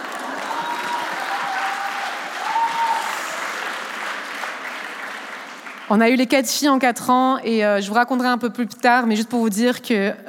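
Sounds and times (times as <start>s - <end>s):
audience applause: 0.0s - 6.0s
speech: 5.9s - 10.2s.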